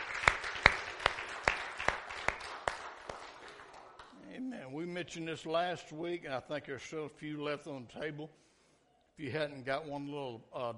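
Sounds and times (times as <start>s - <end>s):
audience hand clapping: 0.0s - 4.4s
speech: 5.0s - 8.5s, 9.2s - 10.7s.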